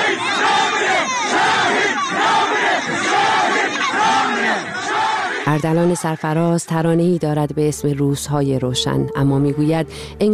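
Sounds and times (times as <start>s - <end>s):
large crowd chanting a slogan in unison: 0.0s - 6.2s
speech: 5.5s - 10.3s.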